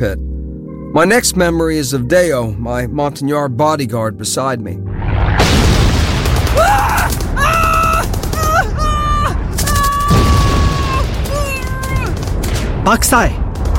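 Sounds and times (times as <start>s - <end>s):
speech: 0.0s - 0.3s, 0.9s - 5.0s, 12.8s - 13.4s
explosion blast: 4.9s - 13.7s.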